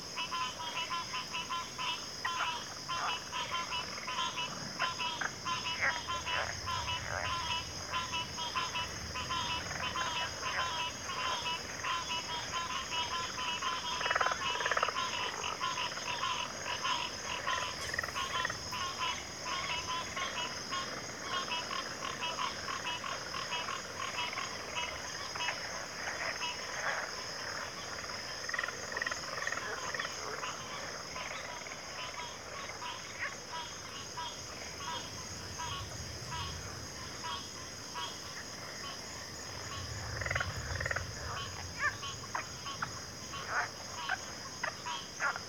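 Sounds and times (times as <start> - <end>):
cricket chorus: 0.0 - 45.4
rattling croaking calls: 0.0 - 45.4.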